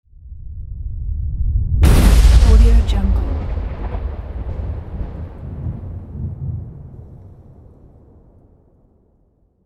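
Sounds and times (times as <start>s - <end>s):
lightning strike: 1.8s - 9.4s.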